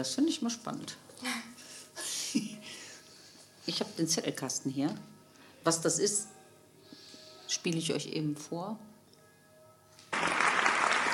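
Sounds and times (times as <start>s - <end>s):
speech: 0.0s - 1.4s, 3.7s - 6.4s, 7.5s - 8.9s
applause: 10.1s - 11.1s.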